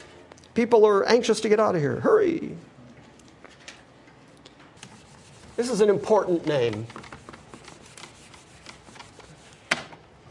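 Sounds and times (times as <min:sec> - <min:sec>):
speech: 0:00.6 - 0:02.7, 0:05.6 - 0:07.0
writing being erased from a board during a Bible lesson: 0:04.8 - 0:09.8.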